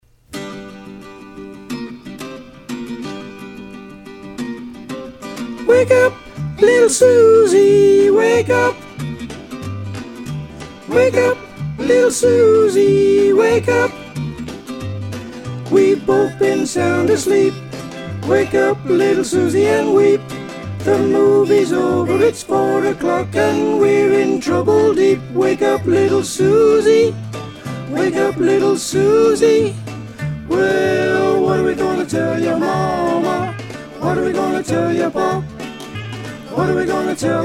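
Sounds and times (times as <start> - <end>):
soprano singing: 5.6 - 8.8, 10.9 - 14.3, 15.7 - 27.2, 27.9 - 37.4.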